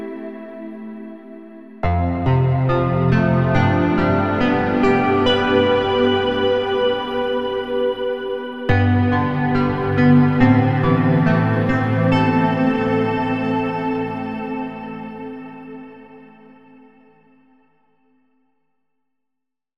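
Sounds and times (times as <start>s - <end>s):
synth harp melody in A minor at 70 BPM: 1.8s - 16.1s.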